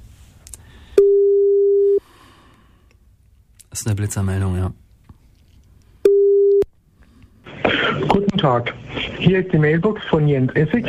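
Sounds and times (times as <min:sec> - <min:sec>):
telephone call tone: 0:01.0 - 0:02.0, 0:06.0 - 0:06.7
speech: 0:03.8 - 0:04.8, 0:08.4 - 0:10.8.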